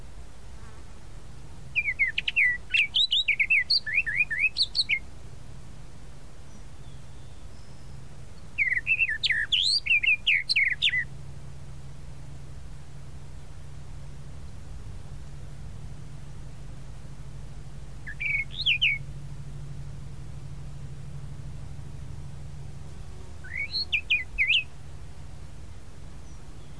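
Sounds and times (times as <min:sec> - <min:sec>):
tropical mockingbird song: 0:01.7 - 0:05.1, 0:06.4 - 0:11.1, 0:18.0 - 0:19.7, 0:22.8 - 0:24.9, 0:26.2 - 0:26.7.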